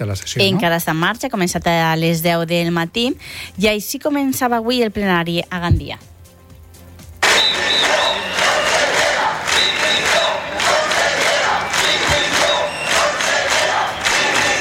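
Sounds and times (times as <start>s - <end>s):
speech: 0.0s - 6.1s
large crowd of protesting teachers and students chanting and shouting: 7.2s - 14.5s
protesters' whistles: 7.2s - 14.5s.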